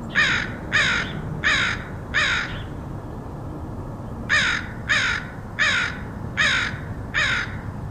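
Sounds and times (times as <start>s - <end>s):
crows cawing in Portland, OR: 0.1s - 2.7s, 4.3s - 7.8s.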